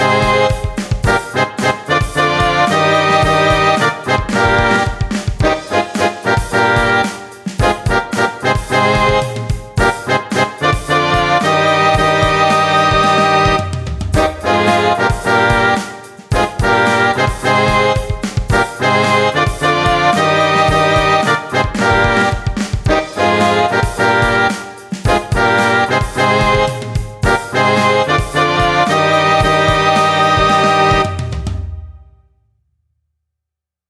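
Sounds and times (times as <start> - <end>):
brass duet playing a two-part exercise: 0.0 - 32.1.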